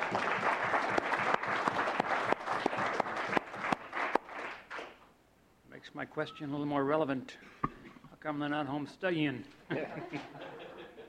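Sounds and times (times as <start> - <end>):
group applauding: 0.0 - 5.1
speech: 6.0 - 7.6, 8.2 - 10.4
laughter: 9.7 - 11.0.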